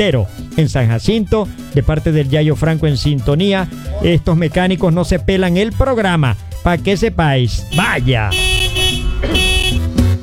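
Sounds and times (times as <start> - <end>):
speech: 0.0 - 8.5
car horn blasts: 7.5 - 10.1.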